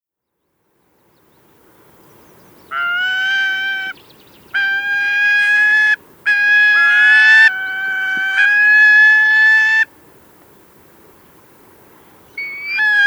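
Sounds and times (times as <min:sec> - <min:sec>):
gyrfalcon harsh chattering calls: 0:02.7 - 0:09.9, 0:12.4 - 0:13.0.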